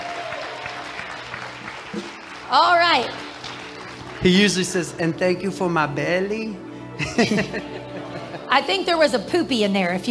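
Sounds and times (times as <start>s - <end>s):
audience applause at a Christmas church gathering: 0.0s - 5.2s
speech: 2.5s - 3.3s, 4.2s - 10.0s
laughter: 7.0s - 8.6s.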